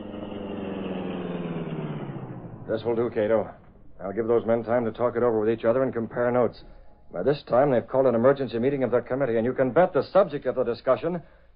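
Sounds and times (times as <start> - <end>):
car engine idling while parked in a dark alley: 0.0 - 5.5
speech: 2.7 - 11.4.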